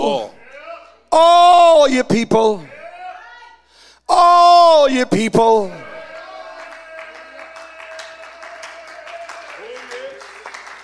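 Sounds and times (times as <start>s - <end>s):
speech: 1.2s - 2.7s, 4.1s - 5.9s
audience clapping hands: 6.0s - 10.8s.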